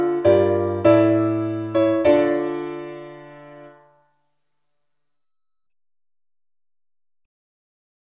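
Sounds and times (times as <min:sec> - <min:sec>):
faster instrumental MIDI play-along version of a folia in C: 0:00.0 - 0:04.0.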